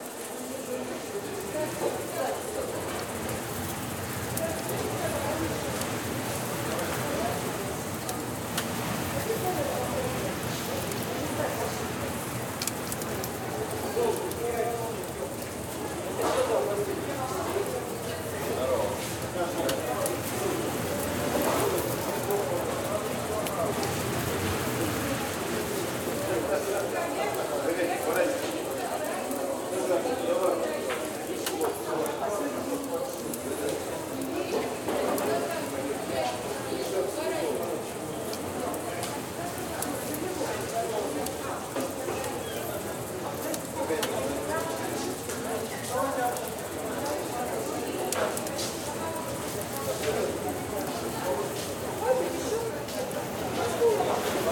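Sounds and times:
fair crowd ambience: 0.0s - 54.4s.

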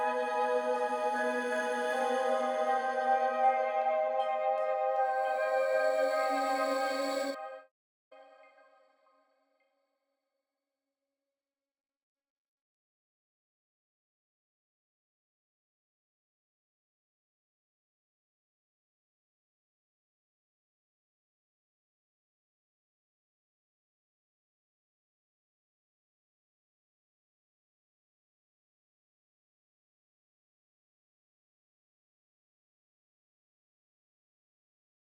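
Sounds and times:
synth pads: 0.0s - 7.4s.

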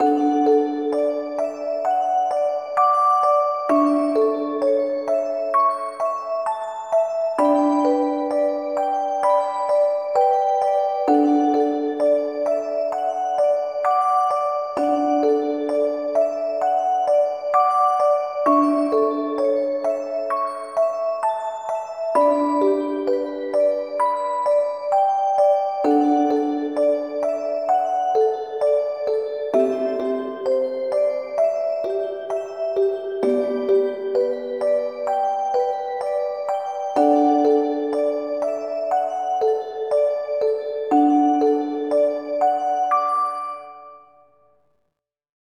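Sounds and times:
music box: 0.0s - 44.5s.

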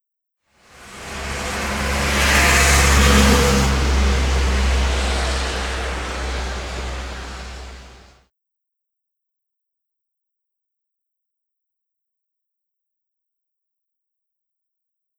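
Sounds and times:
car at the Gateway Arch: 0.7s - 8.2s.

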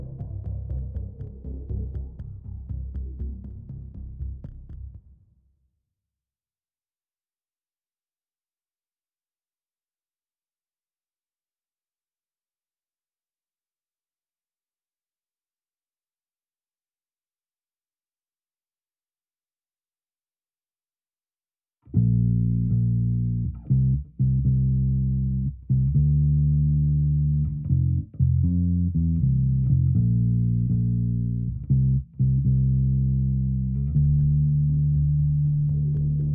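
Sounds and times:
double basses: 0.0s - 5.0s, 21.9s - 36.3s.

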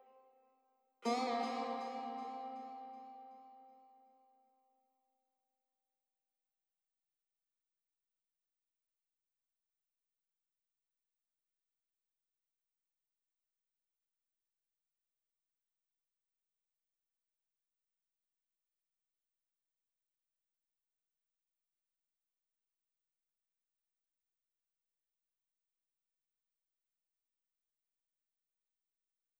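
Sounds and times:
ethnic music: 1.0s - 4.2s.

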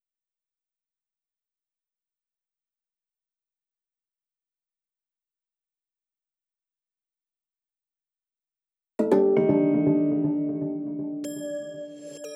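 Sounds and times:
synthesizers: 9.0s - 12.3s.

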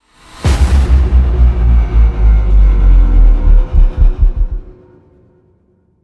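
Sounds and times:
modulated stinger: 0.5s - 4.7s.

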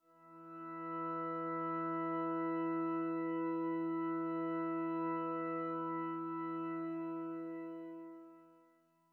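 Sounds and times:
church organ: 0.2s - 8.6s.

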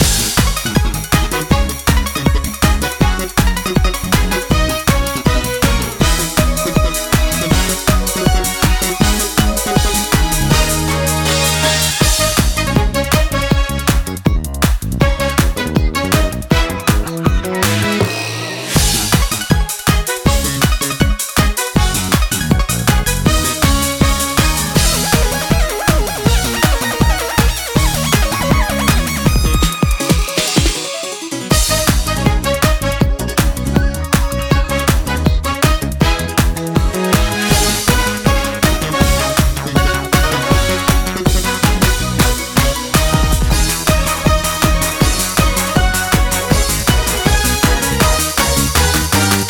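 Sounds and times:
kart racing game music loop: 0.0s - 49.4s.

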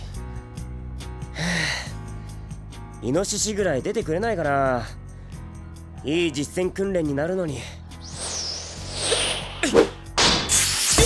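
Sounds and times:
speech: 3.0s - 5.0s, 6.0s - 7.8s
fire extinguisher bursting: 8.0s - 11.0s.

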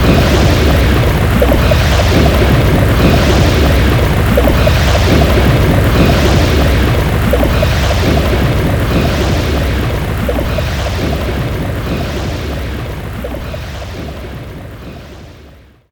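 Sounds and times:
active enemy shell wizard sound loop: 0.0s - 14.1s.

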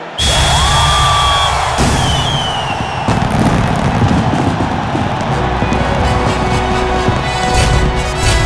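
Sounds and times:
large fireworks: 0.2s - 8.4s.

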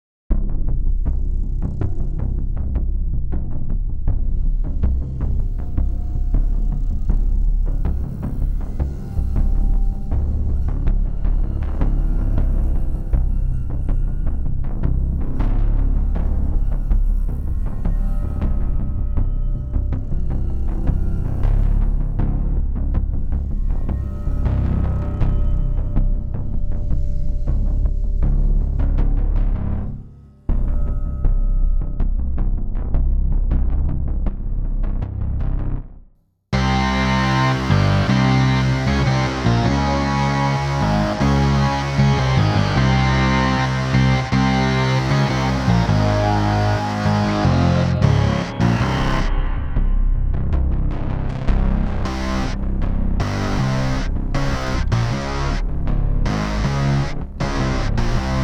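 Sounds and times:
bass: 0.0s - 58.4s.

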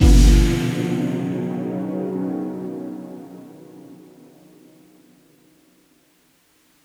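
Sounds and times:
level end stinger: 0.0s - 1.5s.

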